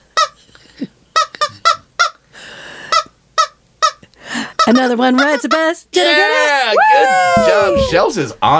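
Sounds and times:
squeezed rubber chicken toy squeaking: 0.1s - 0.4s, 1.2s - 2.2s, 2.9s - 5.8s
speech: 4.7s - 8.5s.

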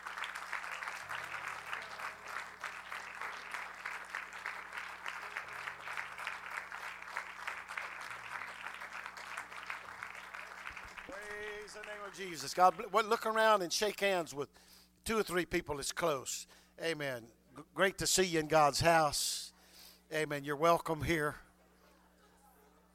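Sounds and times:
audience clapping hands: 0.0s - 13.5s
speech: 11.7s - 19.4s, 20.1s - 21.4s.

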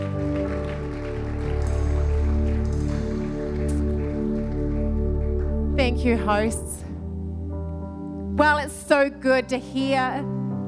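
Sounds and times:
audience applauding: 0.0s - 6.0s
speech: 5.9s - 6.8s, 8.4s - 10.4s.

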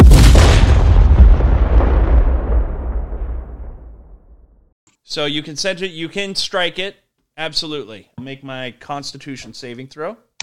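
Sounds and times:
thunderous magical blast with deep rolling rumble: 0.0s - 4.7s
speech: 5.2s - 10.2s.

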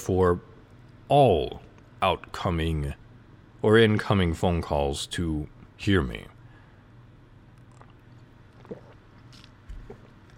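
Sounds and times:
speech: 0.0s - 0.5s, 1.1s - 3.0s, 3.6s - 6.3s
low steady hum: 0.0s - 10.3s
sipping and swallowing water: 7.5s - 10.3s.

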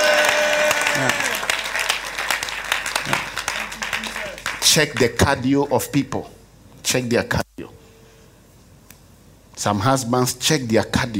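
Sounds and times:
audience clapping hands: 0.0s - 5.3s
speech: 4.7s - 7.8s, 9.6s - 11.1s.

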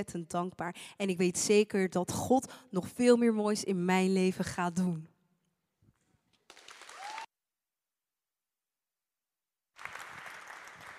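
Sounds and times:
speech: 0.0s - 5.1s
audience applause: 6.5s - 7.3s, 9.8s - 10.9s.

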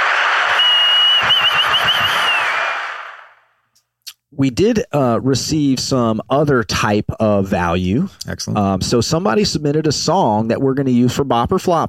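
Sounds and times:
applause sound effect: 0.0s - 3.4s
speech: 4.4s - 11.8s.

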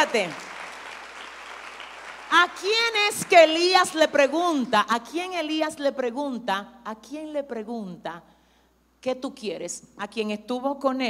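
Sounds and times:
speech: 0.0s - 0.5s, 2.3s - 8.3s, 9.0s - 11.0s
audience applause: 0.0s - 3.6s.

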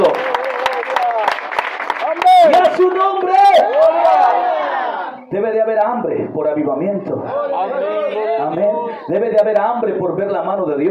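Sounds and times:
audience applauding: 0.0s - 4.4s
speech: 5.3s - 10.8s.

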